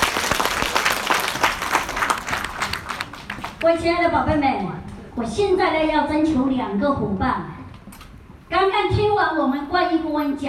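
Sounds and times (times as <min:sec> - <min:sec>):
audience applause: 0:00.0 - 0:03.7
speech: 0:03.6 - 0:07.6, 0:08.5 - 0:10.4.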